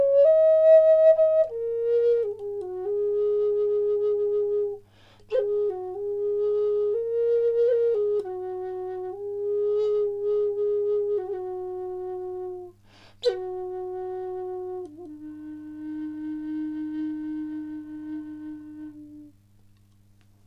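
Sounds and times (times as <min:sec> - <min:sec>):
handmade walnut Native American flute in E at 432 Hz: 0:00.0 - 0:19.4.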